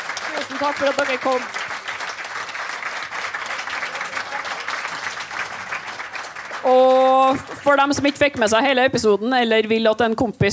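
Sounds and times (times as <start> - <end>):
crowd audience applause: 0.0 - 8.3
speech: 0.4 - 1.6, 6.6 - 10.5.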